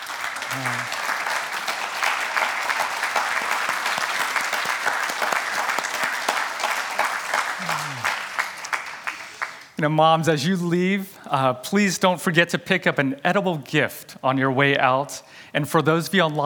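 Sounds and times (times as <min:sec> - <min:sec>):
audience applauding: 0:00.0 - 0:09.8
speech: 0:00.6 - 0:01.0, 0:09.8 - 0:16.4.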